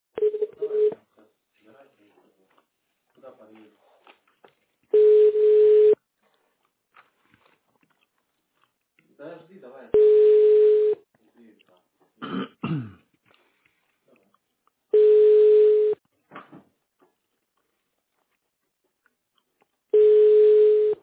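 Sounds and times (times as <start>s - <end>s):
telephone ringback tone as a call goes unanswered: 0.2s - 1.0s, 4.9s - 6.0s, 10.0s - 11.0s, 15.0s - 16.0s, 20.0s - 21.0s.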